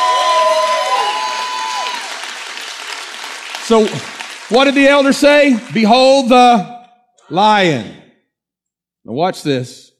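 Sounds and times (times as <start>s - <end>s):
crowd cheering and shouting praise: 0.0s - 2.3s
high whoops: 0.0s - 2.3s
speech: 3.7s - 6.7s, 7.3s - 8.0s, 9.0s - 9.9s.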